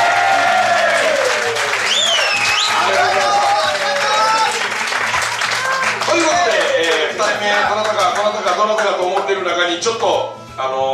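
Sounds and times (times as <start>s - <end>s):
audience applause: 0.0s - 8.3s
speech: 8.6s - 10.9s.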